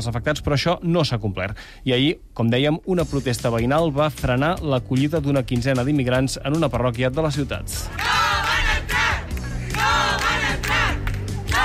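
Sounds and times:
speech: 0:00.0 - 0:08.4
protest crowd chanting in unison: 0:07.9 - 0:11.6.

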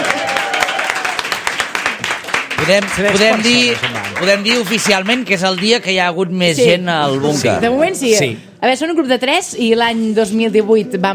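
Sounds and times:
small group clapping: 0:00.0 - 0:06.6
speech: 0:02.7 - 0:11.1.

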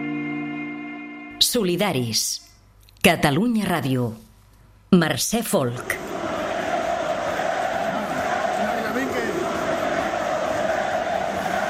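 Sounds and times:
speech: 0:01.4 - 0:02.4, 0:03.0 - 0:04.2, 0:04.9 - 0:06.1
stadium crowd chanting: 0:05.8 - 0:11.6.

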